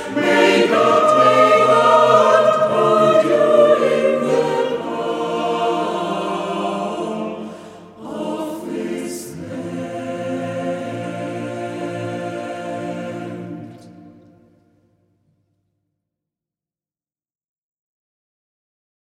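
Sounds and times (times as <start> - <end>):
choir singing: 0.0 - 14.7.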